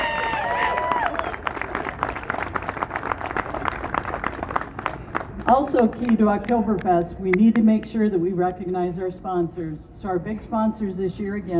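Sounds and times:
audience applause: 0.0s - 5.4s
speech: 5.5s - 11.5s.

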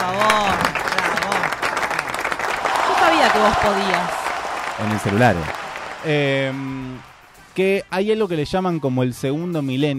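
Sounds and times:
applause: 0.0s - 7.6s
speech: 3.4s - 4.2s, 4.8s - 9.9s.

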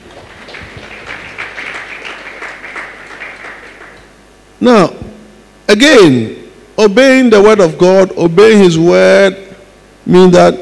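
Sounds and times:
crowd clapping: 0.0s - 4.2s
speech: 4.6s - 5.0s, 5.7s - 9.4s, 10.1s - 10.6s.

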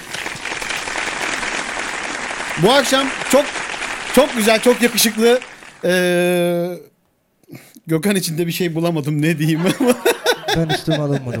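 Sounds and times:
audience applause: 0.0s - 6.4s
speech: 2.6s - 3.6s, 4.2s - 6.9s, 7.5s - 11.3s
laughter: 9.4s - 11.3s.

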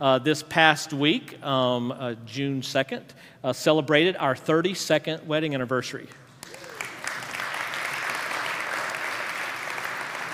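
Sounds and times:
speech: 0.0s - 6.2s
audience applause: 6.4s - 10.3s.

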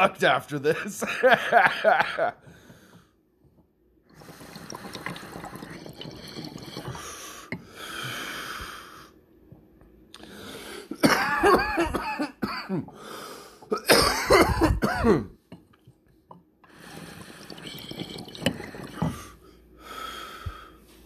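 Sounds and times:
speech: 0.0s - 2.5s, 15.0s - 15.4s
person coughing after very big hits of smoke: 10.9s - 12.9s, 13.7s - 15.4s.

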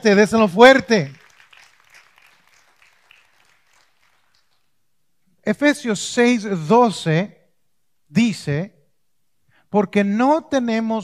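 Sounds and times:
speech: 0.0s - 1.2s, 5.5s - 7.4s, 8.1s - 8.8s, 9.7s - 11.0s
audience applauding: 0.7s - 4.7s.

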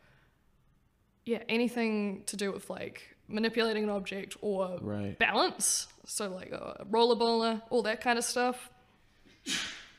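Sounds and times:
speech: 1.3s - 8.8s, 9.4s - 9.9s
sneeze: 9.4s - 9.9s.

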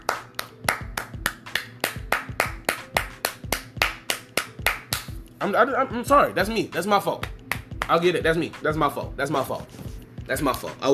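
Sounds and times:
hand clapping: 0.0s - 5.3s, 7.1s - 8.2s
speech: 5.4s - 7.3s, 7.9s - 10.9s.

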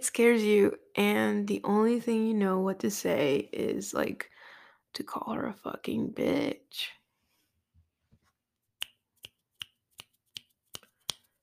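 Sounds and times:
speech: 0.0s - 4.3s, 5.0s - 7.0s
finger snaps in place of applause: 8.8s - 11.4s.

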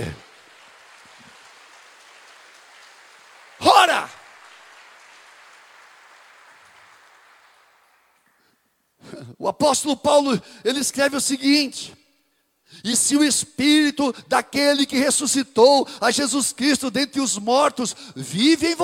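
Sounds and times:
audience applause: 0.0s - 8.6s
speech: 9.4s - 12.0s, 12.7s - 18.8s.

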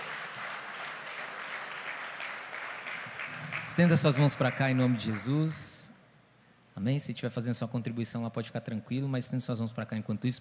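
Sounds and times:
audience applauding: 0.0s - 5.6s
speech: 3.8s - 5.8s, 6.8s - 10.4s.

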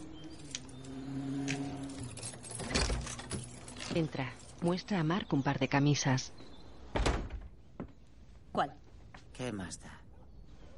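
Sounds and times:
house door being opened: 0.4s - 4.1s, 6.9s - 7.6s
speech: 4.0s - 6.4s, 8.6s - 8.8s, 9.4s - 10.0s.

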